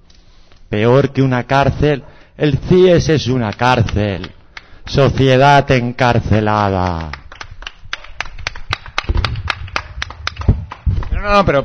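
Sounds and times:
speech: 0:00.7 - 0:07.2, 0:11.2 - 0:11.6
hands clapping in unison at a gathering: 0:03.4 - 0:05.4, 0:06.6 - 0:11.6.

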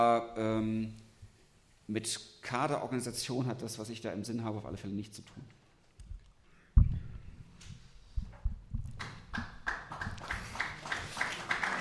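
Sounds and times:
speech: 0:00.0 - 0:01.0, 0:01.9 - 0:05.6
audience applause: 0:09.0 - 0:11.7.

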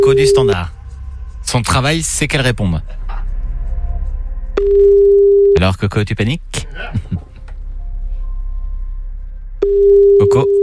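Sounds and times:
speech: 0:00.0 - 0:00.8, 0:01.4 - 0:03.0, 0:04.6 - 0:07.3, 0:09.7 - 0:10.6
low hum: 0:00.0 - 0:10.6
telephone ringing tone: 0:04.6 - 0:05.6, 0:09.6 - 0:10.6.

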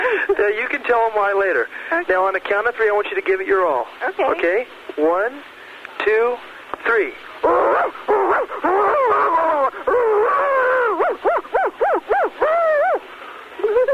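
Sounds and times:
speech: 0:00.4 - 0:09.8
person imitating a barking dog: 0:07.4 - 0:13.9.

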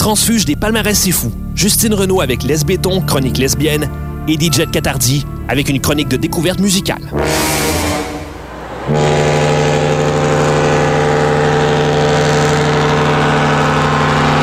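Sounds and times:
speech: 0:00.0 - 0:07.7, 0:08.9 - 0:09.1
engine of a boat rented for the summer rumbling: 0:00.0 - 0:14.4
loud deep boat horn droning: 0:07.0 - 0:14.4.

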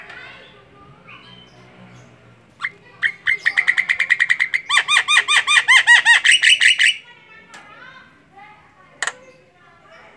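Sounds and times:
Javan myna singing with clicks and chattering notes: 0:02.5 - 0:07.7, 0:08.9 - 0:09.4.

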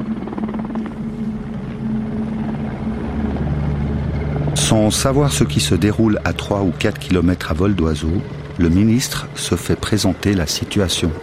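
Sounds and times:
French military helicopters landing, rotors thumping: 0:00.0 - 0:11.2
helicopter engine drone: 0:00.0 - 0:11.2
speech: 0:04.7 - 0:11.2.

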